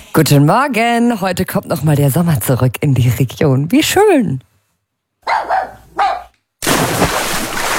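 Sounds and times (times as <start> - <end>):
speech: 0.2 - 4.5
dachshund and German shepherd barking at pool: 5.2 - 6.4
rushing, splashing water at pool: 6.6 - 7.7.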